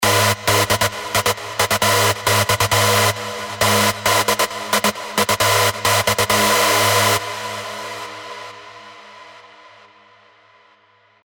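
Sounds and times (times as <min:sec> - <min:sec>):
rave synth stabs: 0:00.0 - 0:08.6.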